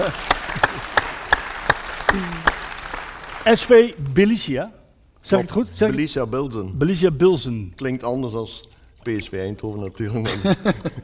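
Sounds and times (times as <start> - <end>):
speech: 0.0 - 0.9, 3.4 - 11.0
audience applause: 0.0 - 3.8
laughter: 10.2 - 11.0.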